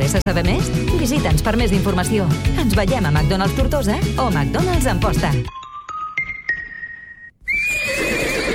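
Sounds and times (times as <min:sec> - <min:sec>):
speech: 0:00.2 - 0:05.6
horse whinnying at an equestrian centre's summer camp: 0:07.4 - 0:08.5.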